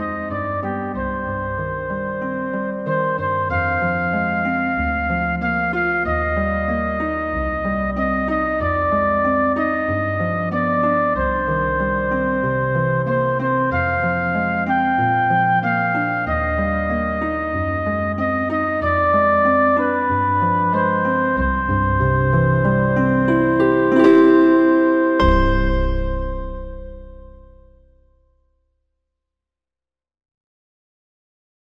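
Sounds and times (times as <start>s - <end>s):
harp: 0.0s - 28.0s
piano: 0.0s - 28.1s
soprano singing in a minor key: 22.8s - 27.5s.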